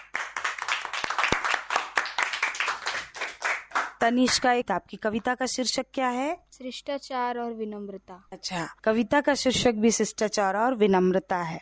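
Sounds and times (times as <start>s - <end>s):
audience applause: 0.0s - 4.0s
speech: 4.0s - 11.6s.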